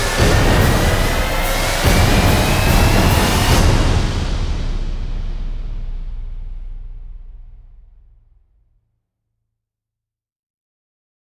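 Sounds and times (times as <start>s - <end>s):
drums building: 0.0s - 8.4s.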